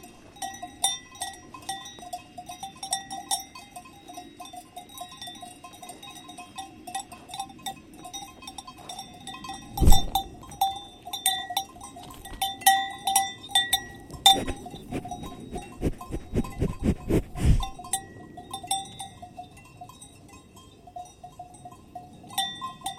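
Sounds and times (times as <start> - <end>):
cows feeding: 0.0 - 18.3
heavy thump: 9.8 - 10.2
soft rustling: 9.8 - 10.3, 14.1 - 17.9.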